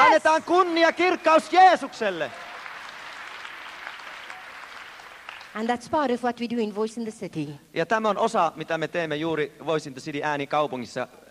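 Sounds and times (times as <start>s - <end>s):
church congregation clapping for Jesus: 0.0s - 5.7s
speech: 0.2s - 2.5s, 5.5s - 11.2s.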